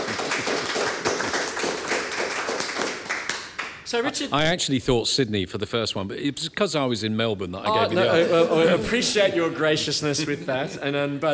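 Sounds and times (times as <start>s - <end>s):
small group applause: 0.0s - 4.1s
speech: 3.9s - 11.3s
laughter: 7.7s - 11.2s.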